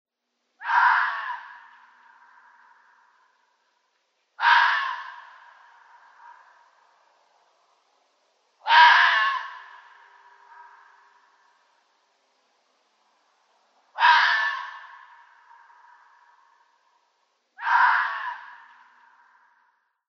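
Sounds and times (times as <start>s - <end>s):
red fox rasping cries: 0.6s - 3.3s, 4.4s - 6.7s, 8.6s - 11.3s, 14.0s - 16.7s, 17.6s - 19.6s.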